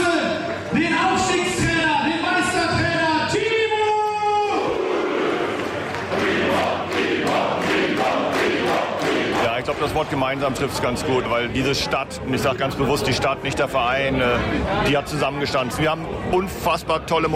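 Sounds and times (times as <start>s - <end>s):
fans cheering: 0.0s - 10.8s
speech: 10.0s - 17.3s.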